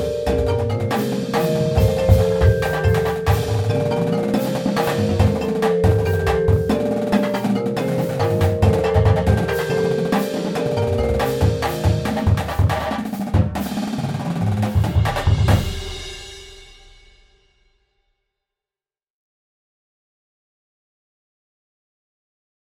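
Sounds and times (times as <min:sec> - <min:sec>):
percussion: 0:00.0 - 0:17.8.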